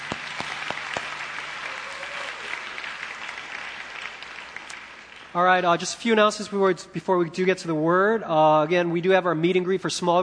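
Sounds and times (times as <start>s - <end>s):
church congregation clapping to welcome guests: 0.0s - 6.5s
speech: 5.4s - 10.2s.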